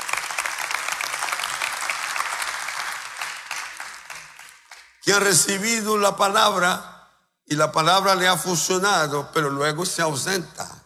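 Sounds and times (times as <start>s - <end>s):
crowd applause: 0.0s - 4.9s
speech: 5.1s - 6.9s, 7.5s - 10.7s.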